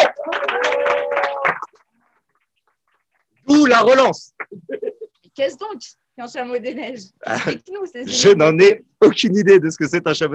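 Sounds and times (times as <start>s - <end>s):
audience applause: 0.0s - 2.4s
speech: 3.7s - 10.3s.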